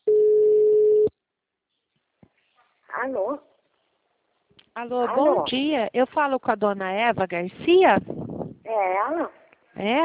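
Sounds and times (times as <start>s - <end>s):
telephone ringing: 0.0s - 1.1s
speech: 4.8s - 10.0s.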